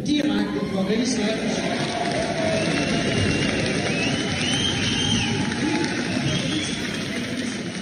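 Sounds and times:
speech: 0:00.0 - 0:03.2
standing ovation applause from a large crowd at party conference: 0:00.5 - 0:07.8.

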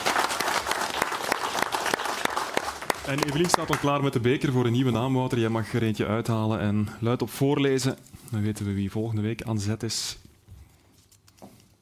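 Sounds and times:
studio audience applause: 0:00.0 - 0:04.2
speech: 0:03.1 - 0:10.2.

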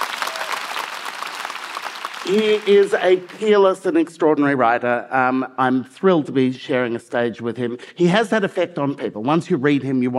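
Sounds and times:
audience applause: 0:00.0 - 0:03.5
speech: 0:02.2 - 0:10.1.

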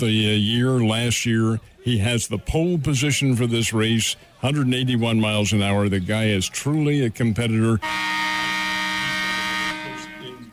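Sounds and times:
speech: 0:00.0 - 0:08.4
shot clock buzzer going off: 0:07.8 - 0:10.4.

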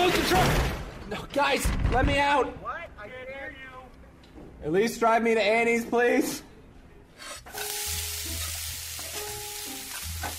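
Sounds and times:
speech: 0:00.3 - 0:03.6, 0:04.6 - 0:06.5
bacon and mussels sizzling in a pan: 0:07.5 - 0:10.3.

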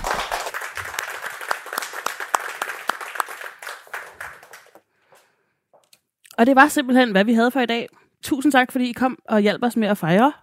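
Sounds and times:
audience applause: 0:00.0 - 0:04.9
speech: 0:06.4 - 0:10.4.

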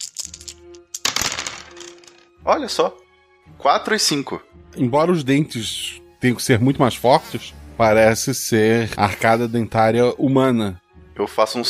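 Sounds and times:
two dice being rolled: 0:00.0 - 0:02.3
speech: 0:02.5 - 0:03.0, 0:03.6 - 0:11.6.

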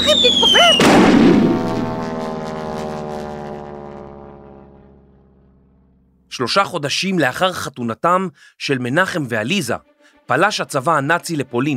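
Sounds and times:
aerial bomb explosion: 0:00.7 - 0:02.3
speech: 0:06.4 - 0:11.7.

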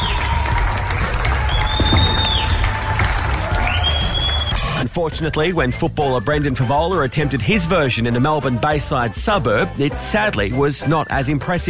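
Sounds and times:
crowd applauding from doorsteps and balconies: 0:00.0 - 0:04.8
high whistles: 0:01.5 - 0:02.8, 0:03.5 - 0:04.8
speech: 0:05.0 - 0:11.6.

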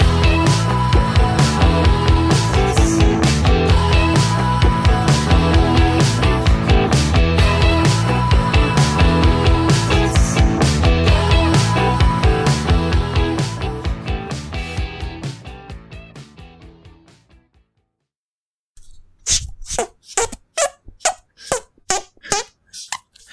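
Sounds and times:
music: 0:00.0 - 0:18.1
squelchy breathy hand farts: 0:18.8 - 0:23.2.

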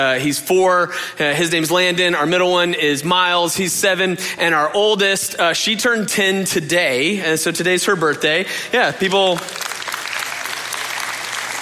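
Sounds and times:
speech: 0:00.0 - 0:09.7
audience applause: 0:09.1 - 0:11.6.

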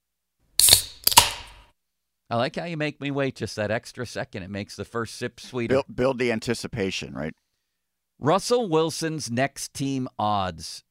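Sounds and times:
beverage can cracking open and fizzing: 0:00.6 - 0:01.6
speech: 0:02.3 - 0:07.4, 0:08.2 - 0:10.8.

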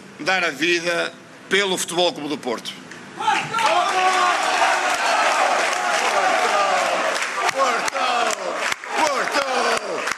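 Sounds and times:
speech: 0:00.2 - 0:04.7, 0:07.6 - 0:08.4
large crowd clapping: 0:03.6 - 0:10.1.

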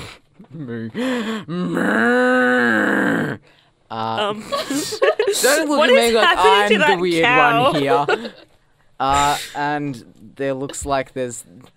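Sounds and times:
speech: 0:00.5 - 0:08.4, 0:09.0 - 0:11.7
person imitating a cow mooing: 0:01.5 - 0:03.4
laughter: 0:04.4 - 0:08.5.

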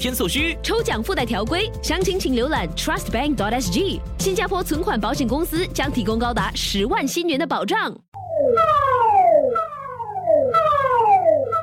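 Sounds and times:
speech: 0:00.0 - 0:09.0
civil defence warning siren: 0:08.2 - 0:11.6.

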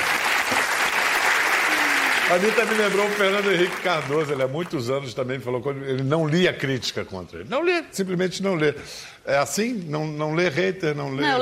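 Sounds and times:
crowd applause: 0:00.0 - 0:04.9
speech: 0:02.3 - 0:11.4.

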